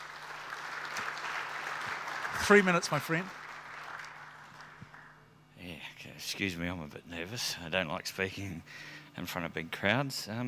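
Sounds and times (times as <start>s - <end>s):
audience clapping: 0.0s - 5.2s
speech: 2.4s - 3.4s, 6.3s - 10.4s.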